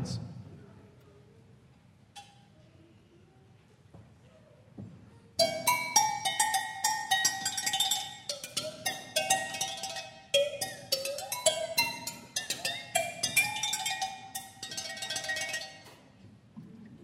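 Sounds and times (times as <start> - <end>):
African agogo bells played with water: 5.4 - 15.9.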